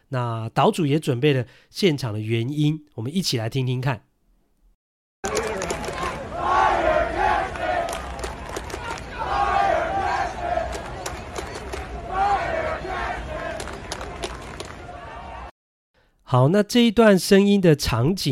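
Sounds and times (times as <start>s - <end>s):
speech: 0.1s - 4.1s, 16.3s - 18.2s
baseball fans chanting slogans in stands: 5.3s - 15.5s.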